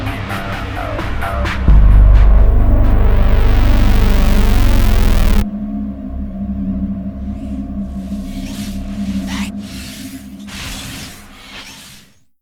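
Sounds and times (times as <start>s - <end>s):
noise: 1.6s - 5.5s.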